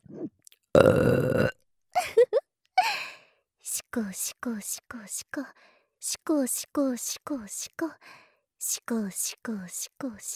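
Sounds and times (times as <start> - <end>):
burp: 0.0 - 1.6
speech: 0.8 - 1.4, 4.0 - 10.3.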